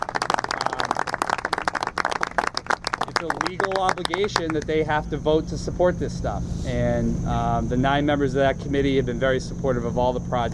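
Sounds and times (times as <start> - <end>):
audience applause: 0.0 - 4.6
speech: 3.2 - 10.5.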